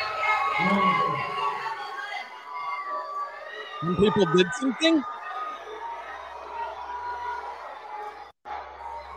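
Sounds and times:
large crowd booing: 0:00.0 - 0:09.1
speech: 0:03.8 - 0:05.2.

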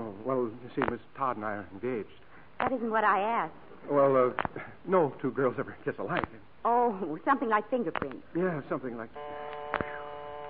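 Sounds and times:
speech: 0:00.1 - 0:10.0
buzzer sounding: 0:09.1 - 0:10.4.

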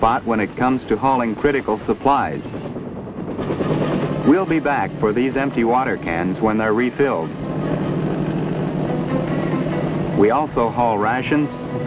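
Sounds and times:
speech: 0:00.0 - 0:02.7, 0:03.4 - 0:07.4, 0:10.2 - 0:11.7
helicopter flying: 0:00.0 - 0:11.8.

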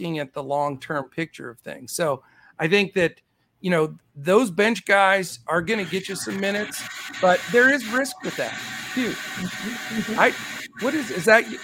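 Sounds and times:
speech: 0:00.0 - 0:11.6
drill whirring in the background: 0:06.0 - 0:11.6.

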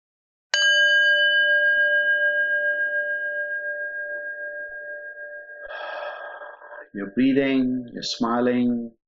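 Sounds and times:
singing bowl struck and ringing: 0:00.5 - 0:06.6
speech: 0:06.9 - 0:09.0.

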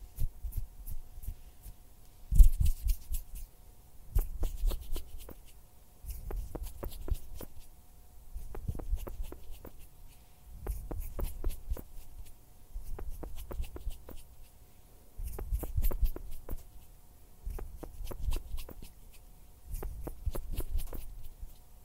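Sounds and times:
faint steady hum: 0:00.0 - 0:21.8
hand sounds and finger fluttering taps and rustles: 0:04.2 - 0:07.6, 0:08.4 - 0:09.9, 0:10.6 - 0:12.0, 0:12.9 - 0:14.3, 0:15.2 - 0:16.7, 0:17.5 - 0:19.0, 0:19.7 - 0:21.4.

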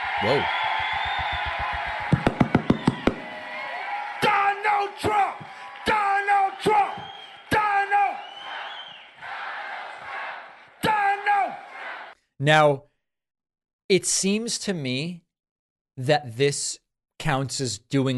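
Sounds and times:
large crowd chanting and cheering at a rally: 0:00.0 - 0:12.2
speech: 0:00.2 - 0:01.1, 0:12.4 - 0:12.9, 0:13.9 - 0:15.2, 0:16.0 - 0:18.1.

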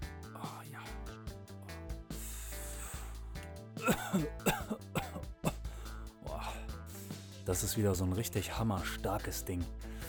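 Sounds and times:
person lighting up and inhaling smoke: 0:02.1 - 0:03.5, 0:05.6 - 0:07.4
person coughing and clearing throat: 0:03.8 - 0:05.7
speech: 0:03.9 - 0:04.4, 0:07.5 - 0:09.9.

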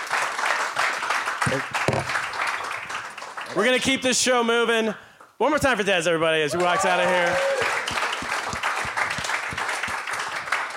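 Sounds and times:
crowd applause: 0:00.0 - 0:03.6, 0:06.6 - 0:10.7
speech: 0:01.4 - 0:02.2, 0:03.5 - 0:07.8
brief voices or cheers: 0:06.5 - 0:07.9.

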